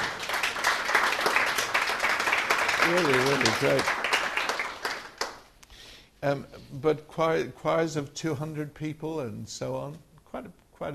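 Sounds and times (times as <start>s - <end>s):
audience applause for the musicians: 0.0s - 5.5s
speech: 2.9s - 4.0s, 6.2s - 10.9s.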